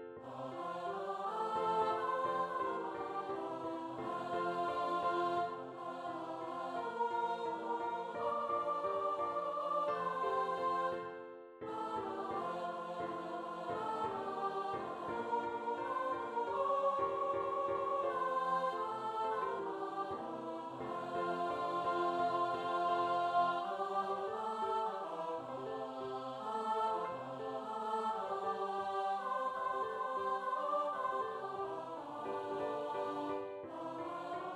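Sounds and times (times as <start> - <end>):
soprano singing a cowboy carol: 0.2 - 11.1, 11.7 - 34.5.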